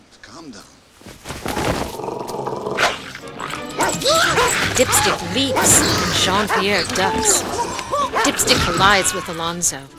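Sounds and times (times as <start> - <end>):
speech: 0.4 - 1.1, 4.8 - 9.9
dog growling and barking: 1.8 - 8.9.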